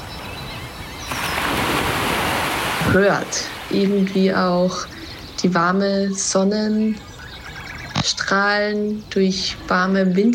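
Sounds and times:
ocean waves breaking on beach: 0.0s - 5.3s
speech: 2.9s - 7.1s, 8.0s - 10.3s.

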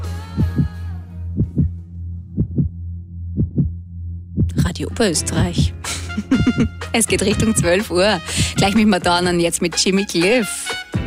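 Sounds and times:
heart beating: 0.4s - 0.8s, 1.4s - 1.8s, 2.4s - 4.8s, 5.4s - 6.8s, 8.4s - 8.8s
speech: 4.8s - 10.8s.

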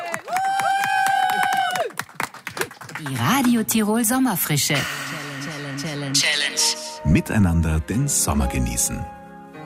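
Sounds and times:
crowd applause after a challenge: 0.0s - 3.7s
speech: 3.0s - 5.0s, 6.1s - 9.2s.

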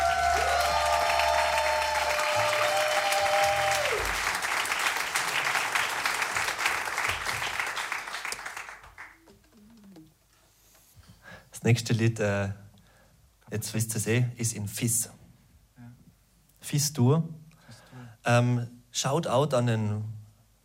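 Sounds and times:
audience applause: 0.0s - 9.5s
speech: 11.7s - 12.6s, 13.5s - 15.2s, 16.7s - 17.4s, 18.3s - 20.2s.

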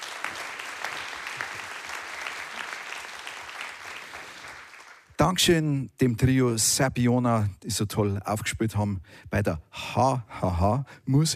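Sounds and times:
audience applause: 0.0s - 5.2s
speech: 5.2s - 11.3s.

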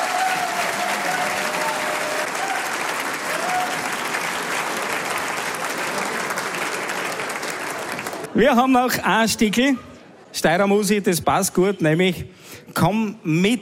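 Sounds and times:
audience applause: 0.0s - 8.4s
speech: 8.4s - 13.5s.

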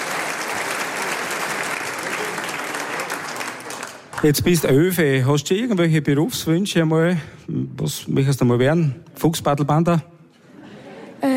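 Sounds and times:
audience applause: 0.0s - 4.8s
speech: 4.2s - 10.1s.

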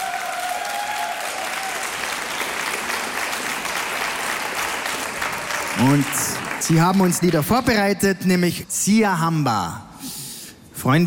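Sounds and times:
audience applause in a hall: 0.0s - 7.4s
speech: 5.8s - 9.9s, 10.8s - 11.0s.

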